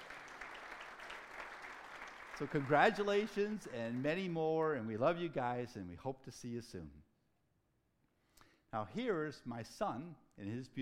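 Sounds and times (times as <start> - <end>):
audience applause: 0.0 - 4.2
speech: 2.4 - 7.1, 8.7 - 10.8.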